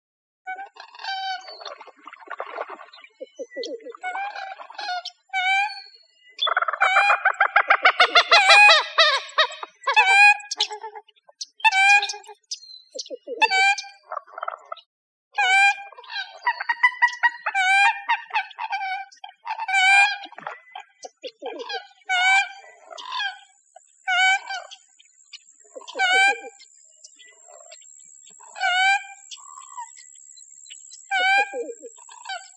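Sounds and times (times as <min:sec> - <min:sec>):
bird nasal squawks: 0:00.5 - 0:12.4, 0:13.0 - 0:14.6, 0:15.4 - 0:25.0, 0:25.8 - 0:26.6, 0:28.4 - 0:30.1, 0:31.0 - 0:32.5.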